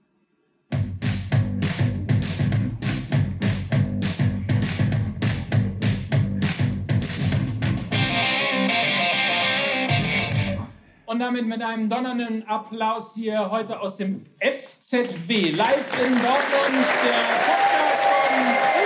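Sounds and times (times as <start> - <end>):
loud distorted rock music with a heavy driving beat: 0.8 - 10.7
speech: 11.2 - 18.7.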